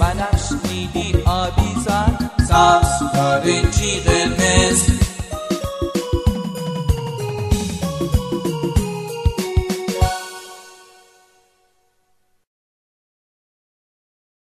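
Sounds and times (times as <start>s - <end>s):
happy children's song: 0.0s - 7.2s, 7.8s - 11.4s.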